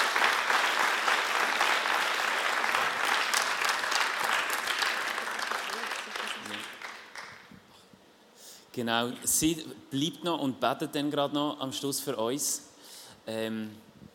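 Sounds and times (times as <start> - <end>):
audience applause: 0.0 - 7.5
speech: 8.8 - 12.7, 13.3 - 13.9.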